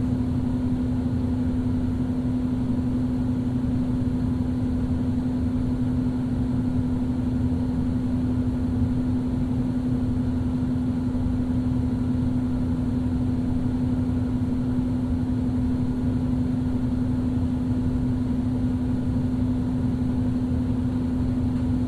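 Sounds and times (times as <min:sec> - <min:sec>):
two vents blowing air in Brooklyn NY: 0:00.0 - 0:21.8.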